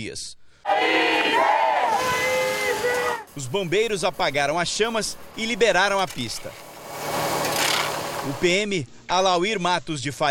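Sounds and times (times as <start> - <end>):
speech: 0.0 - 2.2, 3.2 - 7.2, 8.2 - 10.2
protest crowd shouting: 0.7 - 3.4.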